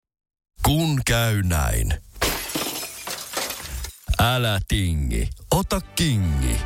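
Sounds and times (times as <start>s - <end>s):
speech: 0.7s - 2.1s, 4.2s - 6.6s
car windshield glass breaking: 2.2s - 4.3s.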